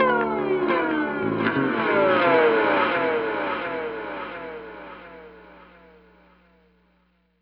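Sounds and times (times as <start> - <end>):
guitar glissando tone: 0.0 - 5.5.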